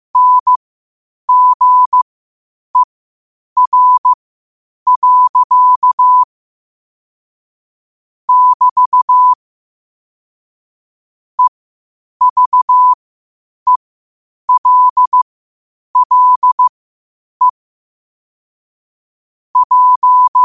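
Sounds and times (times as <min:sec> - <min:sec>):
morse code at 5 wpm: 0:00.2 - 0:00.6, 0:01.3 - 0:02.0, 0:03.6 - 0:04.2, 0:04.9 - 0:06.2, 0:08.3 - 0:09.4, 0:12.2 - 0:13.0, 0:14.5 - 0:15.2, 0:16.0 - 0:16.7, 0:19.6 - 0:20.4.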